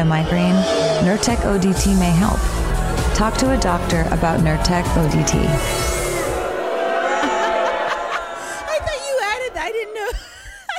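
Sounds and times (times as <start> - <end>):
speech: 0.0 - 5.9
crowd booing: 0.0 - 10.4
laughter: 6.4 - 10.7.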